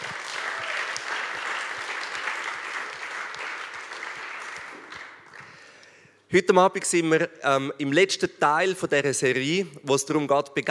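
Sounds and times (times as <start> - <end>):
applause: 0.0 - 5.8
speech: 6.3 - 10.6.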